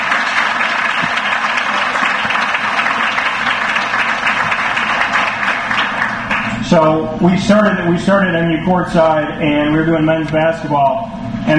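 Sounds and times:
audience round of applause: 0:00.0 - 0:06.6
speech: 0:06.7 - 0:11.5.

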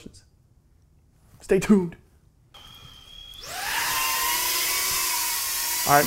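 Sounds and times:
speech: 0:01.5 - 0:02.0, 0:05.9 - 0:06.0
FPV drone motors spinning up: 0:02.6 - 0:06.0.

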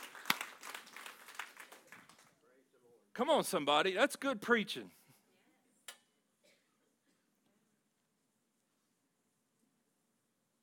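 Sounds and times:
scattered audience clapping: 0:00.0 - 0:02.6
speech: 0:03.2 - 0:05.0.

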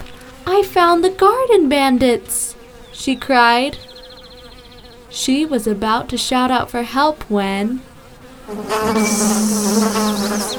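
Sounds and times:
bumblebee wings buzzing: 0:00.0 - 0:10.5
speech: 0:00.6 - 0:03.9, 0:05.1 - 0:07.9, 0:08.5 - 0:10.5.

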